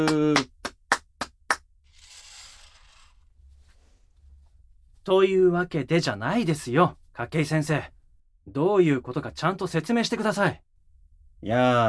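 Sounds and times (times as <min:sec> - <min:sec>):
speech: 0:00.0 - 0:00.5, 0:05.0 - 0:10.7, 0:11.4 - 0:11.8
applause: 0:00.0 - 0:01.6.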